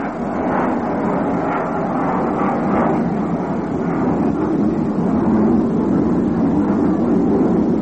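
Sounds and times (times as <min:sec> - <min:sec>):
airplane passing overhead: 0:00.0 - 0:07.8.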